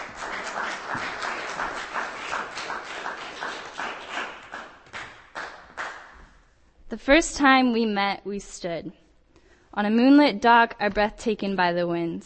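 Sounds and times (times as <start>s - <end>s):
audience applause for a performer at a reading: 0.0s - 6.0s
speech: 6.9s - 9.0s, 9.8s - 12.2s.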